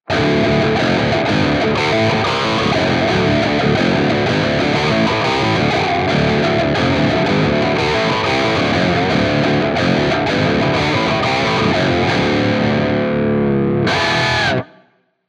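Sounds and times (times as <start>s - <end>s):
crunch octave guitar: 0.0s - 14.9s.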